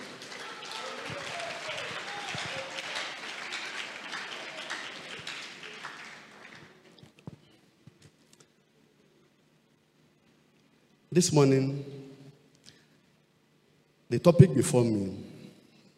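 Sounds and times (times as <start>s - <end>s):
clapping: 0.0s - 7.3s
speech: 11.2s - 12.0s, 14.1s - 15.3s.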